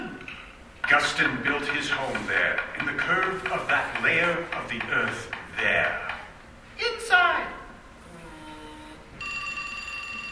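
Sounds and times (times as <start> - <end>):
low hiss: 0.0 - 10.3
speech: 1.0 - 6.1
telephone ringing with a bright sustained electronic ring: 9.2 - 10.3.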